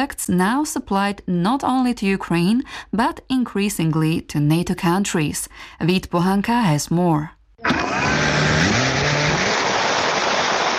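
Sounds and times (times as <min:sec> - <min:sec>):
speech: 0:00.0 - 0:08.8
military drone buzzing: 0:07.6 - 0:10.0.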